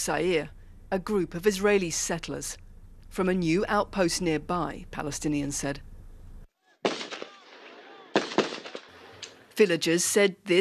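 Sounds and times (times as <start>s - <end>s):
speech: 0.0s - 5.9s, 9.6s - 10.5s
gunfire from a settlement security guard outside Sa'ir: 6.8s - 9.4s.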